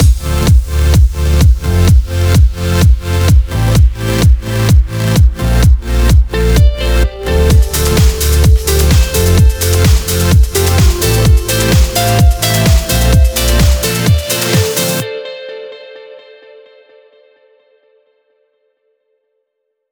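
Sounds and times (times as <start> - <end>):
128 BPM music mix: 0.0 - 15.8.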